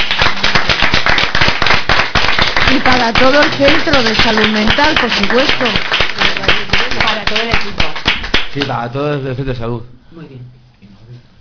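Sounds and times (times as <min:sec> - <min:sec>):
rhythmic applause for a guest in a radio studio: 0:00.0 - 0:08.8
speech: 0:03.0 - 0:07.8, 0:08.5 - 0:10.9.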